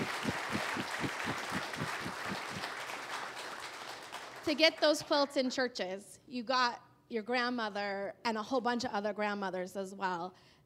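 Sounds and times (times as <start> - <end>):
audience clapping: 0.0 - 5.0
speech: 4.5 - 10.6.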